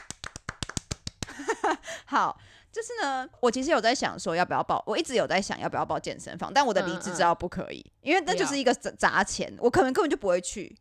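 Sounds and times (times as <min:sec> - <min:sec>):
hands clapping: 0:00.0 - 0:01.5
speech: 0:01.8 - 0:10.7.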